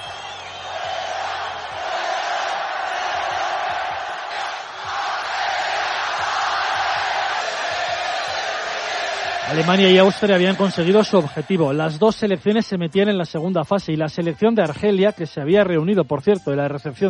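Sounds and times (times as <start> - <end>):
stadium crowd roaring at match end: 0.0 - 12.1
speech: 9.5 - 17.0.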